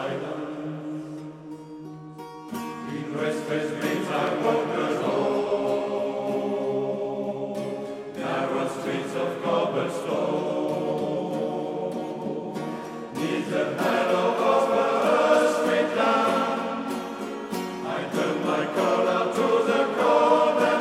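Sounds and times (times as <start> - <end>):
music: 0.0 - 20.8.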